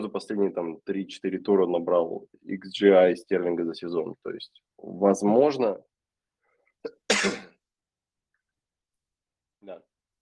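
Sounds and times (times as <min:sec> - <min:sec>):
speech: 0:00.1 - 0:05.9, 0:06.8 - 0:07.5, 0:09.6 - 0:09.9
person coughing: 0:06.8 - 0:07.6.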